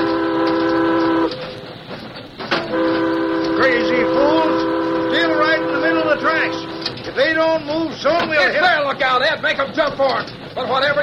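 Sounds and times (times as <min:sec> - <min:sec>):
steam train whistle sounding a warning: 0:00.0 - 0:01.5, 0:02.6 - 0:07.1
moving train chugging rumble: 0:00.0 - 0:11.0
speech: 0:07.2 - 0:11.0.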